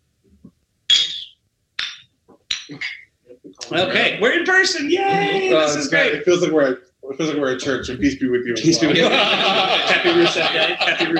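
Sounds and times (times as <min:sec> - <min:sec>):
glasses clinking in a toast: 0:01.8 - 0:03.1
speech: 0:02.7 - 0:03.0, 0:03.7 - 0:11.1
laughter: 0:08.6 - 0:11.1.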